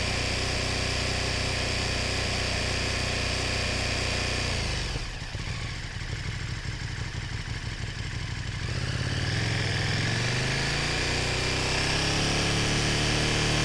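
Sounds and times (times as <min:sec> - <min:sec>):
KTM Super Duke R motorcycle engine starting, holding constant rpm and shutting off: 0:00.0 - 0:13.6.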